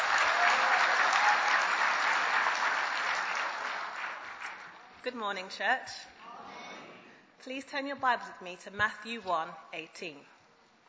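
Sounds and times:
audience applause welcoming a speaker to the pulpit at a church service: 0.0 - 4.7
speech: 5.0 - 6.1, 7.4 - 10.4.

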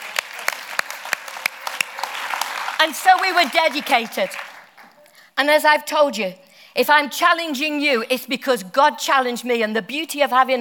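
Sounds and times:
audience clapping: 0.0 - 5.1
speech: 2.8 - 4.5, 5.4 - 10.5.

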